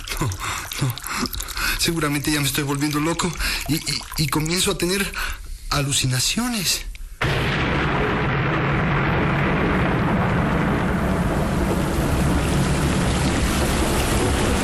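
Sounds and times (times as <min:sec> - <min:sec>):
heavy rain downpour: 0:00.0 - 0:04.2, 0:07.6 - 0:14.6
speech: 0:00.2 - 0:01.0, 0:01.8 - 0:06.9.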